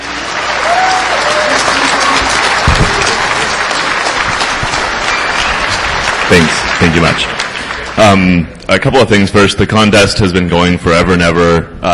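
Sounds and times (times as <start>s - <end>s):
audience applause: 0.0s - 8.4s
speech: 6.4s - 7.4s, 8.0s - 11.9s.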